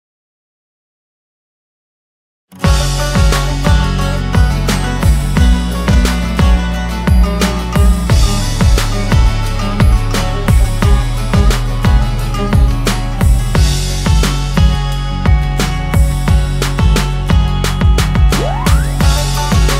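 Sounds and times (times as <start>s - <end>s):
remixed music: 2.6s - 19.7s.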